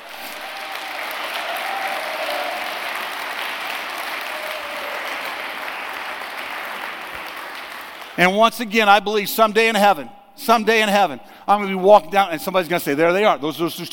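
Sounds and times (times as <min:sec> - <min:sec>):
audience applause: 0:00.0 - 0:08.2
speech: 0:08.2 - 0:13.9.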